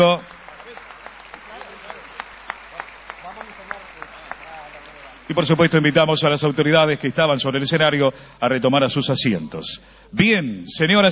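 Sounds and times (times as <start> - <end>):
speech: 0.0 - 0.4, 5.3 - 11.0
audience applause: 0.0 - 7.7.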